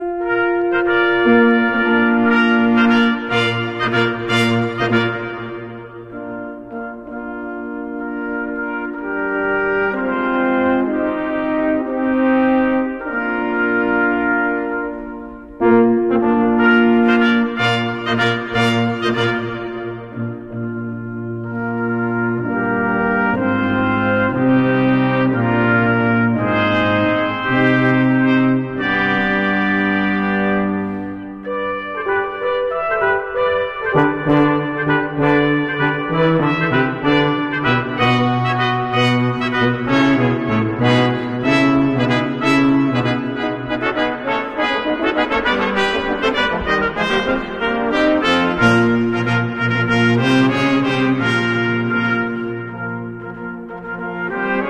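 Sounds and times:
brass ensemble: 0.0 - 54.6.

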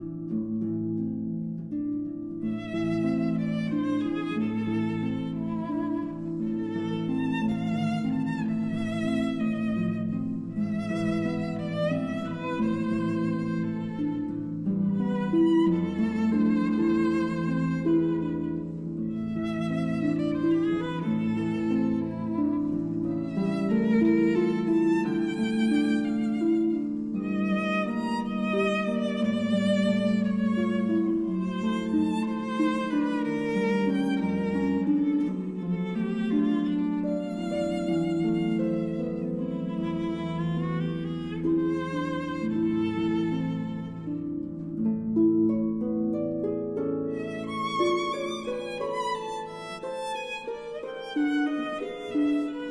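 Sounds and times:
berceuse for violin and harp: 0.0 - 52.7.

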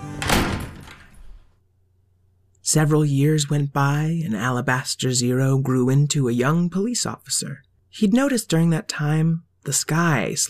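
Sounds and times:
door closing as someone walks out: 0.1 - 1.5
speech: 2.7 - 10.4.

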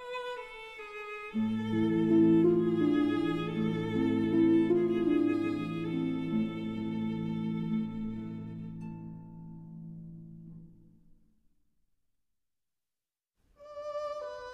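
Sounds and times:
berceuse for violin and harp: 0.0 - 9.8, 13.6 - 14.5.

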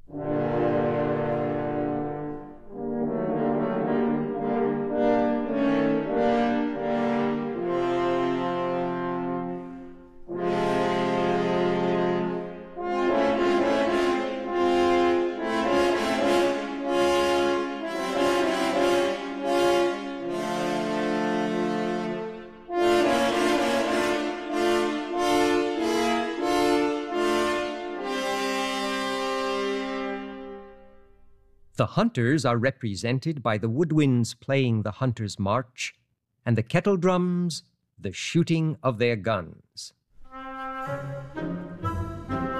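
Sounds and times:
three French horns playing an ominous theme: 0.0 - 31.4, 40.2 - 42.5
speech: 31.8 - 40.0, 40.8 - 41.6.

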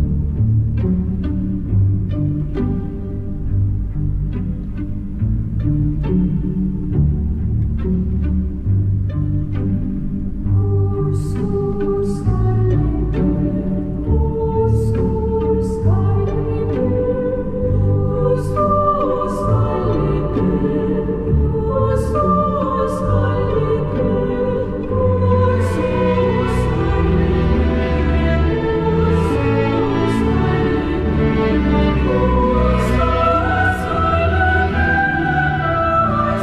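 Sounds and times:
strings playing: 0.0 - 36.4
female choir singing a lullaby: 10.6 - 36.4.

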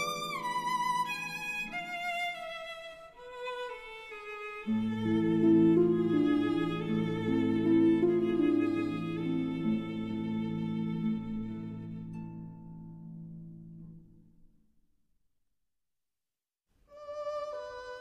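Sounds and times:
berceuse for violin and harp: 0.0 - 12.9, 16.9 - 18.0.

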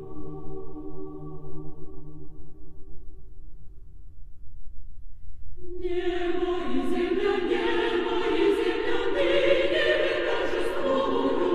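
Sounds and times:
Russian Christmas carols, some sung in Ukrainian: 0.0 - 3.2, 5.6 - 11.5.

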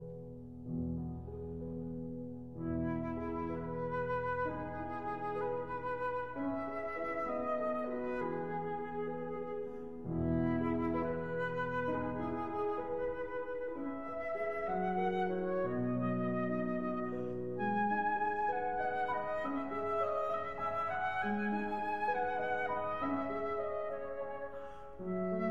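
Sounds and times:
flute and piano lullaby: 0.0 - 25.4.

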